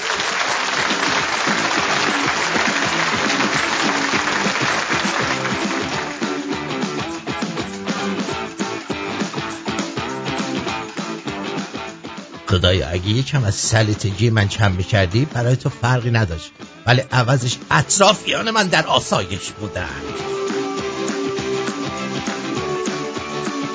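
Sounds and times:
audience applause: 0.0s - 11.9s, 18.3s - 23.7s
speech: 12.6s - 20.6s.

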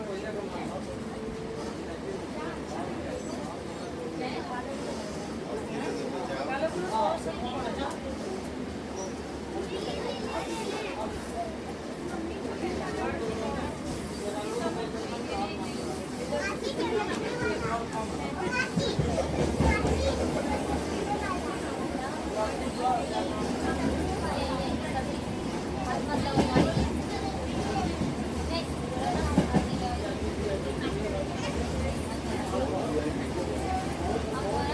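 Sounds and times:
low railroad rumble: 0.0s - 34.7s
people including children talking: 0.0s - 34.7s.

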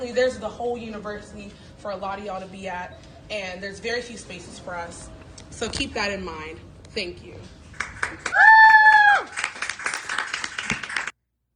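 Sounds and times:
speech: 0.0s - 8.4s
scattered audience applause: 7.7s - 11.1s.

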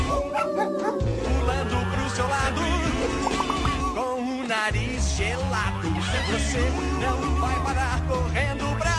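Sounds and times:
puppy whimpering: 0.1s - 1.3s
bright tuneful musical backing in a children's song: 1.0s - 4.1s
speech: 4.7s - 8.9s.

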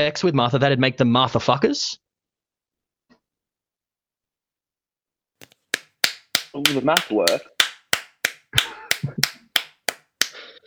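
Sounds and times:
speech: 0.0s - 2.0s, 6.6s - 7.5s
hands clapping: 5.4s - 10.4s.

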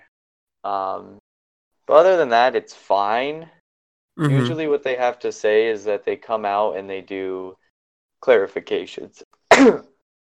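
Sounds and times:
speech: 0.6s - 1.2s, 1.9s - 3.6s, 4.2s - 7.6s, 8.2s - 9.9s
person sneezing: 4.2s - 4.6s.

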